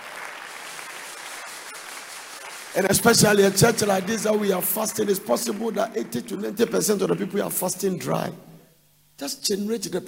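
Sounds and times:
audience clapping: 0.0 - 8.0
speech: 2.7 - 8.5, 9.2 - 10.0.

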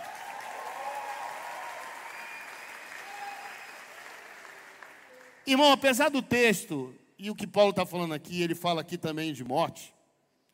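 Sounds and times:
audience applause: 0.0 - 5.5
speech: 5.5 - 10.0.

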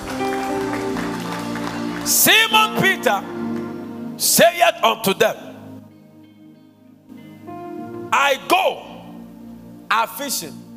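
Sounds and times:
audience clapping hands: 0.0 - 4.0
speech: 2.1 - 3.5, 4.2 - 5.5, 8.1 - 8.9, 9.9 - 10.6.

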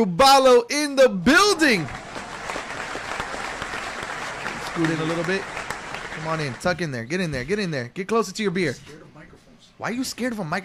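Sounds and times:
speech: 0.0 - 2.0, 4.8 - 5.5, 6.2 - 9.0, 9.8 - 10.6
round of applause: 1.6 - 6.8.

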